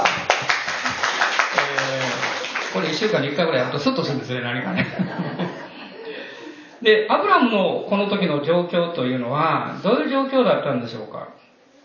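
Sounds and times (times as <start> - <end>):
audience clapping: 0.0 - 4.0
laughter: 0.8 - 6.6
speech: 3.0 - 5.6, 6.8 - 11.4.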